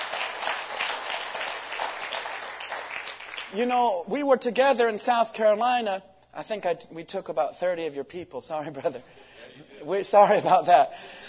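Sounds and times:
audience applause: 0.0s - 3.5s
speech: 3.5s - 11.2s.

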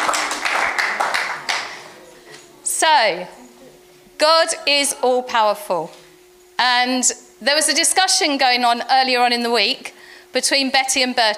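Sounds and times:
round of applause: 0.0s - 2.0s
speech: 2.9s - 3.5s, 4.2s - 6.0s, 6.6s - 11.3s.

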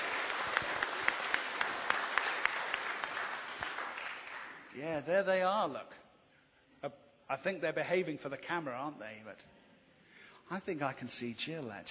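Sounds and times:
audience applause: 0.0s - 4.8s
speech: 4.8s - 6.0s, 6.8s - 9.6s, 10.5s - 11.9s.

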